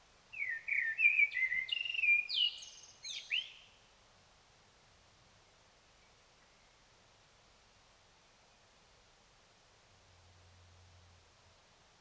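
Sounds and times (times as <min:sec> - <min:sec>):
Common blackbird singing: 0:00.4 - 0:03.6.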